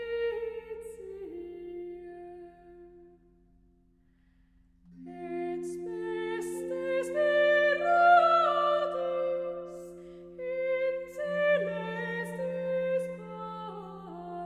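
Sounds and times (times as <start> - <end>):
choir singing antiphon: 5.0 - 14.4.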